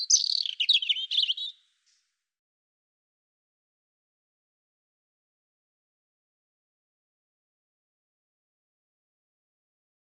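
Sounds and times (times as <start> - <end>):
European robin singing: 0.0 - 1.7.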